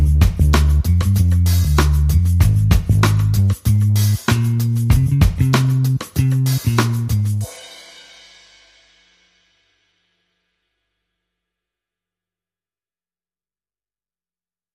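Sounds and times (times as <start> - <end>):
bass: 0.0 - 7.5
drums: 0.0 - 9.7.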